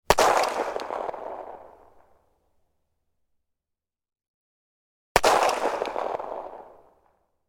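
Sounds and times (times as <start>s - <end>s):
1911 pistol gunshot: 0.0s - 2.2s, 5.2s - 7.2s.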